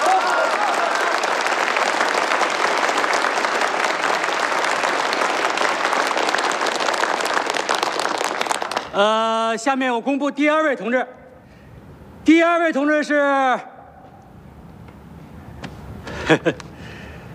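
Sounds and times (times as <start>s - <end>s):
enthusiastic applause from a sizable audience: 0.0s - 9.1s
speech: 9.0s - 11.2s, 12.2s - 13.7s, 16.3s - 16.6s.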